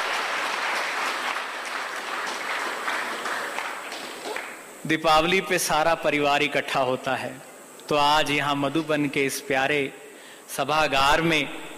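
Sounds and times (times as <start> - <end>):
large crowd applauding in a hall: 0.0 - 4.6
speech: 4.8 - 11.6.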